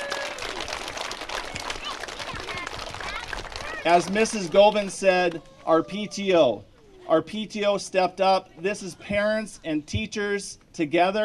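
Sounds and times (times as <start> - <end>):
students applauding: 0.0 - 5.8
speech: 3.8 - 11.2.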